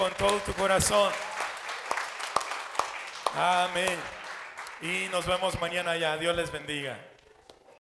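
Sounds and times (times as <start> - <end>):
speech: 0.0 - 1.4, 3.4 - 4.2, 4.8 - 7.1
audience applause: 0.0 - 6.0.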